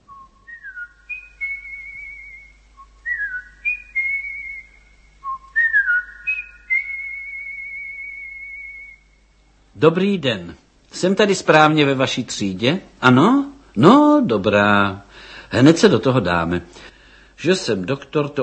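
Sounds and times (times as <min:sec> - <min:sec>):
person whistling at a surgery door: 0:00.1 - 0:09.1
speech: 0:09.8 - 0:18.4.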